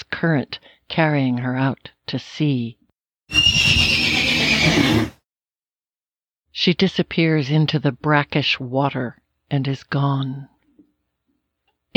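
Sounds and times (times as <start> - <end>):
speech: 0.2 - 3.9, 4.6 - 5.2, 6.6 - 10.5
horse screaming: 3.3 - 5.2.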